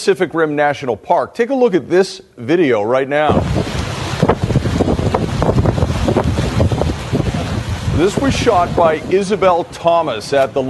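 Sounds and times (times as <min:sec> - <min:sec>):
speech: 0:00.0 - 0:03.7, 0:08.0 - 0:10.6
powerful wave crashing onto beach stairway: 0:03.2 - 0:10.6
water rushing up the path: 0:03.2 - 0:10.6.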